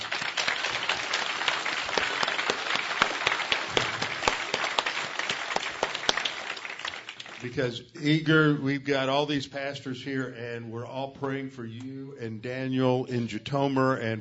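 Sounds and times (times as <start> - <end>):
audience clapping and applause: 0.0 - 7.8
speech: 7.4 - 14.1.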